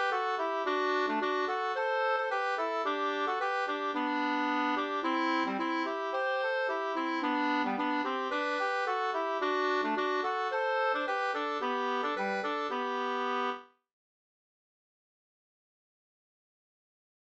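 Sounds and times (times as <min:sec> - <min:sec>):
folk walking tune: 0:00.0 - 0:13.6.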